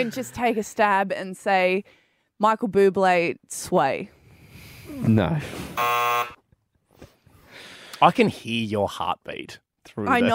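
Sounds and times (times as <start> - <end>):
speech: 0.0 - 4.2, 4.9 - 6.4, 8.0 - 10.3
game show buzzer: 5.8 - 6.4.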